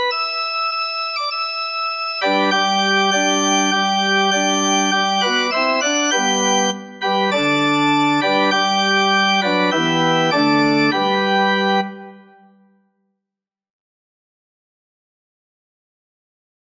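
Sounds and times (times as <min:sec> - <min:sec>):
organ playing a hymn: 0:00.0 - 0:12.5.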